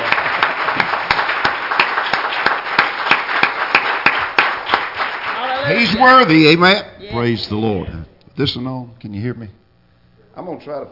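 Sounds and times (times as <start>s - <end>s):
audience hand clapping: 0.0s - 6.3s
speech: 5.8s - 9.6s, 10.4s - 10.9s.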